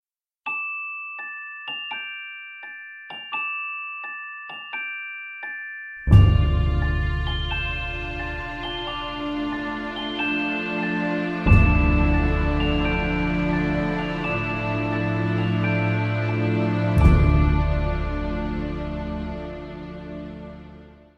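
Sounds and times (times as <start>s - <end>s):
music box: 0.5s - 20.6s.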